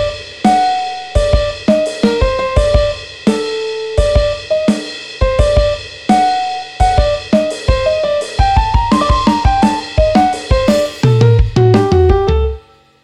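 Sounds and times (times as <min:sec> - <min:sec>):
piano riff: 0:00.0 - 0:13.0.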